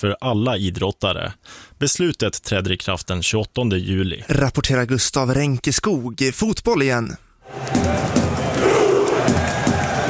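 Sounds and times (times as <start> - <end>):
speech: 0.0 - 8.2
crowd cheering at the Norwegian World Cup squad's homecoming in Oslo: 7.4 - 10.0.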